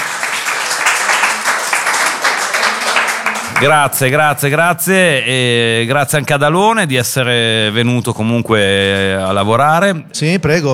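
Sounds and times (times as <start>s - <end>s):
group applause with many hands clapping: 0.0s - 4.6s
murmur of voices: 0.0s - 10.7s
speech: 3.6s - 10.7s.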